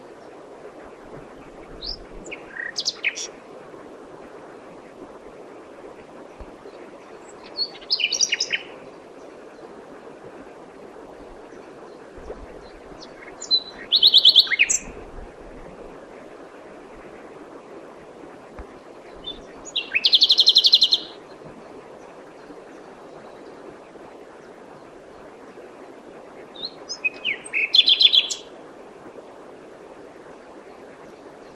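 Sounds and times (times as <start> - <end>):
common nightingale song: 1.8 - 3.3, 7.2 - 8.8, 13.0 - 14.9, 19.2 - 21.2, 26.6 - 28.5.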